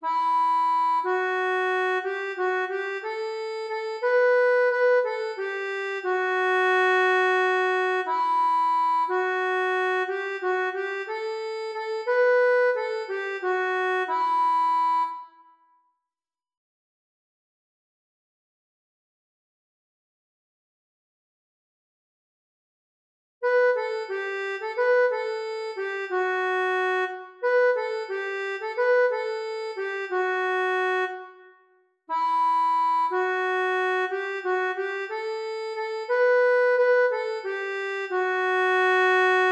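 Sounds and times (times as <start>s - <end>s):
accordion: 0.0s - 15.6s, 23.4s - 39.5s.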